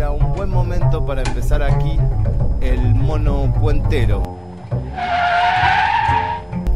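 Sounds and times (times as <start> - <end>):
low car engine rumble: 0.0 - 5.0
speech: 0.6 - 2.3, 3.1 - 4.4
1980-model car tires screeching skidding in a near crash: 4.7 - 6.6.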